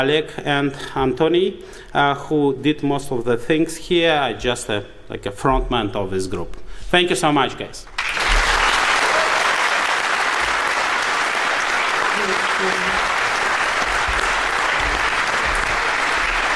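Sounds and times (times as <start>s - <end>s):
speech: 0.0s - 7.9s
audience applause: 8.0s - 16.5s.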